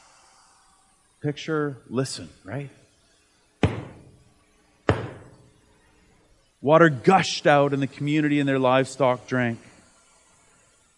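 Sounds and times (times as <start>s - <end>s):
speech: 1.2s - 2.8s, 6.6s - 9.7s
staff striking a rock: 3.6s - 4.1s, 4.9s - 5.4s.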